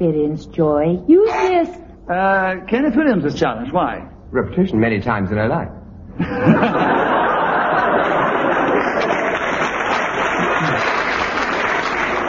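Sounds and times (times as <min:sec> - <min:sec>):
speech: 0:00.0 - 0:07.3
studio audience applause: 0:07.1 - 0:12.2
faint audience chuckles and murmurs: 0:10.4 - 0:11.0.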